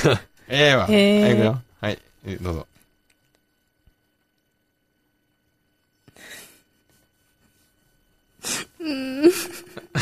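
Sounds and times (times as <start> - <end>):
speech: 0.0 - 2.7, 8.4 - 10.0
person crying with an echo effect: 8.8 - 10.0.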